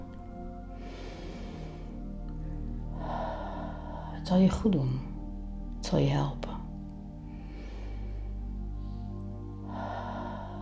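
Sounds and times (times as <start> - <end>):
low droning music bed: 0.0 - 10.6
deep inhaled breath: 0.7 - 4.2, 7.2 - 10.6
speech: 4.3 - 5.1, 5.9 - 6.5.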